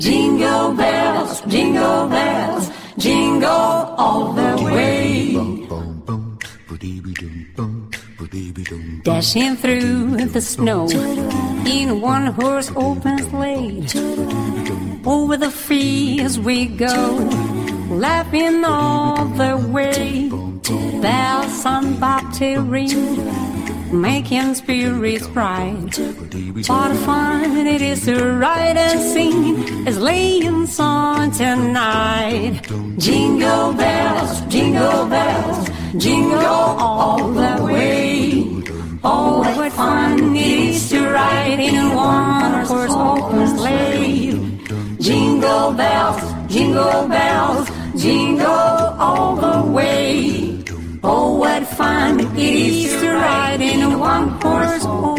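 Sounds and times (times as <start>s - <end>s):
a cappella singing: 0.0s - 55.1s.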